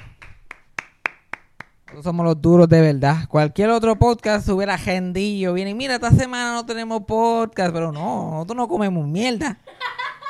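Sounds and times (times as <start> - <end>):
clapping: 0.0 - 2.0
speech: 1.9 - 9.9.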